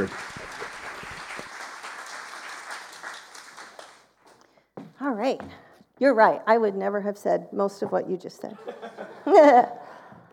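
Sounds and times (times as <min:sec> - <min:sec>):
audience applause: 0:00.0 - 0:04.2
speech: 0:05.3 - 0:09.8
laughter: 0:08.6 - 0:10.0.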